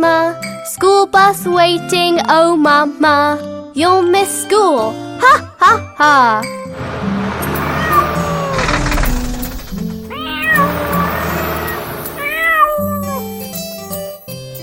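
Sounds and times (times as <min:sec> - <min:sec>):
speech: 0:00.0 - 0:06.9
steady humming tonal background: 0:06.7 - 0:12.9
kitten meowing: 0:10.1 - 0:13.4.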